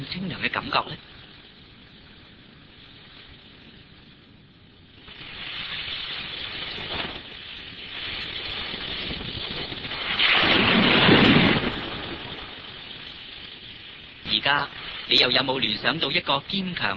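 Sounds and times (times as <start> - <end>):
speech: 0.1 - 1.1, 15.2 - 16.9
ocean waves: 8.0 - 16.3.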